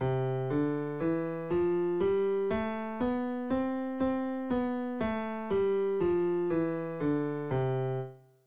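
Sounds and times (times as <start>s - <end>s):
piano playing with left hand crossing over: 0.0s - 8.2s.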